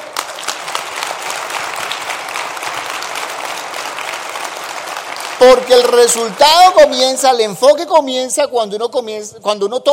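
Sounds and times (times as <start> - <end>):
audience applause: 0.0 - 7.4
speech: 5.4 - 9.9.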